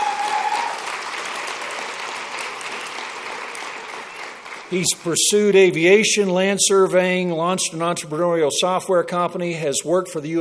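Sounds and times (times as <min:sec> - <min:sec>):
round of applause: 0:00.0 - 0:05.7
speech: 0:04.7 - 0:10.3.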